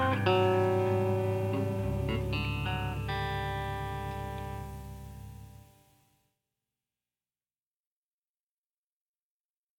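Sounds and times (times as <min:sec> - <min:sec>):
instrumental interlude: 0:00.0 - 0:05.9.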